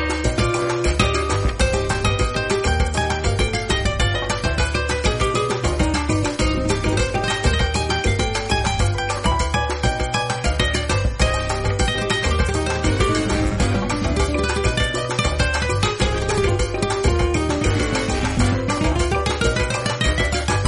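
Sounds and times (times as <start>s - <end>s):
theme music loop: 0.0s - 20.6s.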